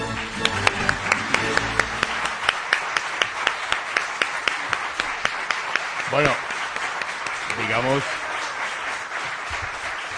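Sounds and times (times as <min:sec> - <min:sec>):
audience applause: 0:00.0 - 0:10.1.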